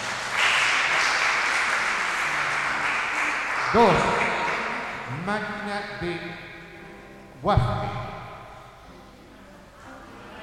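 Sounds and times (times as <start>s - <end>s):
crowd applauding: 0.0s - 5.6s
speech: 3.7s - 4.2s, 5.2s - 6.5s, 7.4s - 7.9s.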